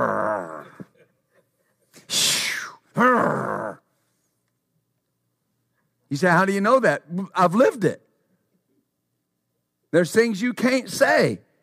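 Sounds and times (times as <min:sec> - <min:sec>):
person imitating a growl: 0:00.0 - 0:00.9, 0:02.6 - 0:03.8
speech: 0:06.1 - 0:08.1, 0:09.9 - 0:11.5.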